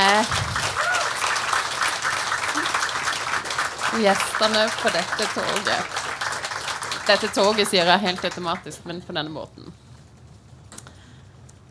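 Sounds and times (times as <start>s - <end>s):
crowd applause: 0.0s - 9.3s
speech: 4.0s - 6.0s, 7.1s - 9.6s.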